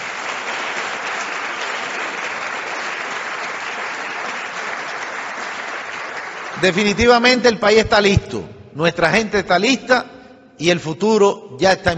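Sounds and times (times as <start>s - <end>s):
audience applause: 0.0s - 7.1s
speech: 6.6s - 11.9s.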